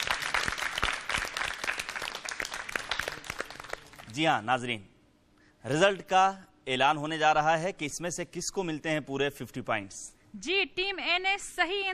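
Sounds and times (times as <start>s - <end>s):
loud audience applause: 0.0s - 4.2s
speech: 4.2s - 4.9s, 5.6s - 11.9s.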